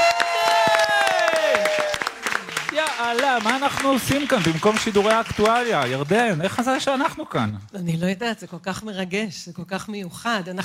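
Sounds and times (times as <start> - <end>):
cheering: 0.0 - 6.0
audience applause: 0.0 - 6.8
speech: 3.1 - 10.6.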